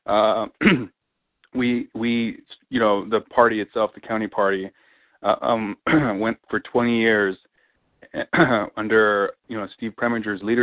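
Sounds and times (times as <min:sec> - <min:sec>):
speech: 0:00.1 - 0:00.9, 0:01.5 - 0:07.5, 0:08.1 - 0:10.6
throat clearing: 0:00.1 - 0:00.9, 0:05.7 - 0:06.3, 0:08.2 - 0:08.8.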